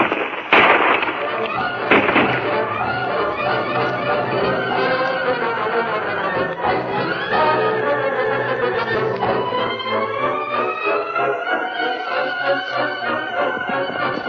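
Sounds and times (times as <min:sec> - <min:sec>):
gunshots fired at a rock: 0:00.0 - 0:05.5
dense busy rumbling noise: 0:00.0 - 0:14.2
indistinct voices: 0:01.2 - 0:14.2.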